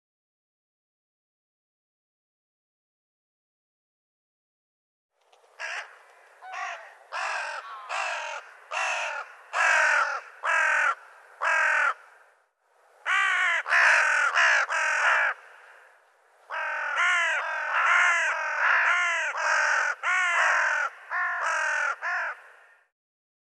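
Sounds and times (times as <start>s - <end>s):
bird calling: 5.6s - 12.3s, 13.1s - 22.9s.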